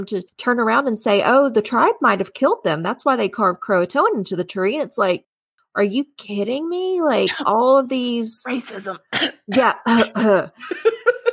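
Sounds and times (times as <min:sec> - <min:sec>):
speech: 0:00.0 - 0:11.1
person imitating a cough: 0:08.5 - 0:10.4
laughter: 0:09.8 - 0:11.3.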